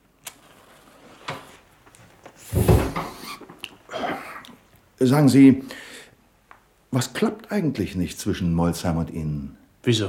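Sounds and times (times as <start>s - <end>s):
door closing: 2.3s - 3.6s
speech: 5.0s - 5.8s, 7.0s - 10.0s.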